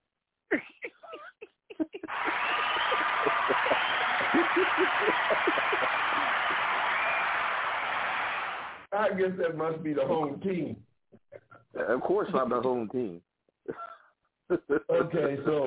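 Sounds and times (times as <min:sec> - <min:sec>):
laughter: 0:00.8 - 0:08.4, 0:13.7 - 0:15.6
crowd cheering: 0:02.1 - 0:08.9
scattered clapping: 0:02.1 - 0:08.9
speech: 0:09.0 - 0:10.9, 0:11.8 - 0:13.8, 0:14.5 - 0:15.6.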